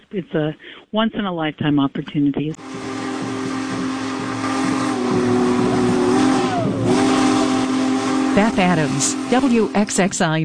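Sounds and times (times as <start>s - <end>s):
speech: 0.1s - 2.8s, 8.4s - 10.4s
steam locomotive whistle: 2.6s - 10.1s.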